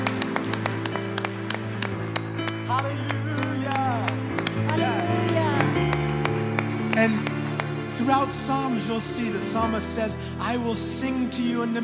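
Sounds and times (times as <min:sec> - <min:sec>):
audience clapping: 0:00.0 - 0:09.0
speech: 0:08.2 - 0:11.8.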